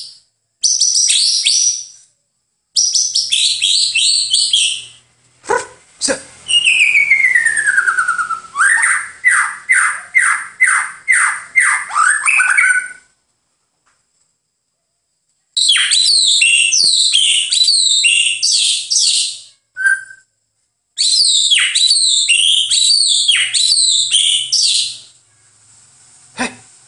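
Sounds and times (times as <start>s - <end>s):
white-eye song: 2.8s - 5.1s, 6.4s - 13.1s, 15.6s - 20.3s, 21.0s - 25.2s.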